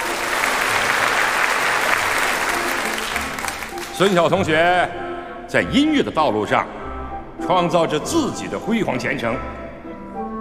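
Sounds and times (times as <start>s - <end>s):
sustained applause from a large group: 0.0s - 4.3s
speech: 4.0s - 6.8s, 7.4s - 9.6s.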